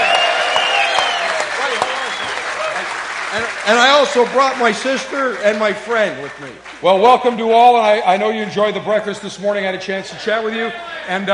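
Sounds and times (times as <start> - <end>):
audience applause: 0.0 - 7.4
speech: 3.4 - 11.3.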